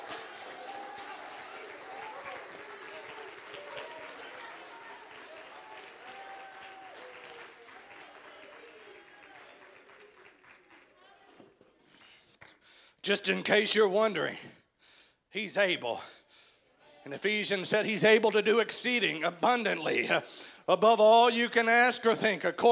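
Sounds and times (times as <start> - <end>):
cheers and voices: 0.0 - 11.6
audience clapping: 0.0 - 12.7
speech: 13.0 - 14.6, 15.4 - 16.2, 17.1 - 22.7.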